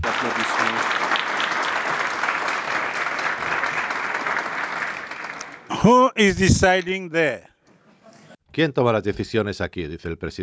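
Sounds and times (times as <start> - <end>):
audience applause: 0.0 - 6.1
speech: 5.8 - 7.5, 8.6 - 10.4.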